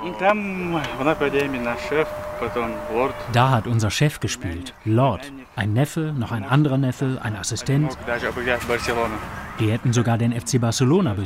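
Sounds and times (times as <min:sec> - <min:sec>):
mosquito buzzing: 0:00.0 - 0:03.8
speech: 0:00.0 - 0:11.2.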